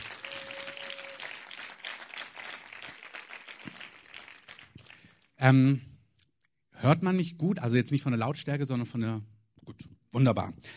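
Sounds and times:
audience applause: 0:00.0 - 0:05.3
speech: 0:05.4 - 0:05.9, 0:06.8 - 0:10.7.

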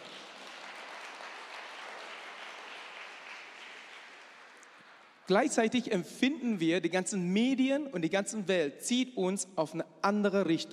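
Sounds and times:
audience applause: 0:00.0 - 0:05.3
speech: 0:05.3 - 0:10.7.

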